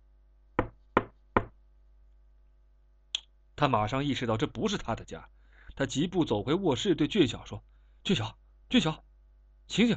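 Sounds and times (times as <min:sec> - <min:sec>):
knocking on a door: 0:00.6 - 0:01.6
speech: 0:03.6 - 0:09.1, 0:09.7 - 0:09.9.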